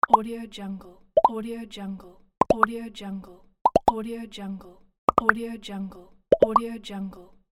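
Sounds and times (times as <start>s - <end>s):
multiple pops: 2.4s - 2.7s, 3.6s - 4.0s, 5.1s - 5.4s, 6.3s - 6.6s.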